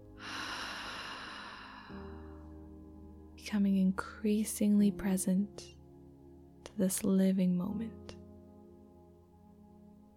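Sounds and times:
slow deep breathing during a guided relaxation: 0.0s - 2.8s
speech: 3.5s - 5.8s, 6.8s - 8.2s.

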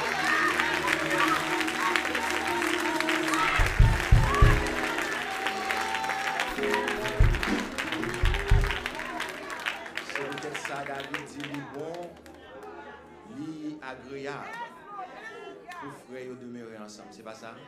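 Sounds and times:
audience applause: 0.0s - 13.0s.

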